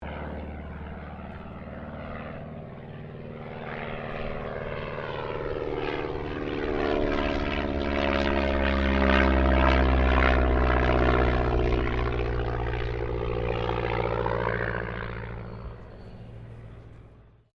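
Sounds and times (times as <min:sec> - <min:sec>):
de Havilland DH82A Tiger Moth aircraft passing: 0:00.0 - 0:17.5.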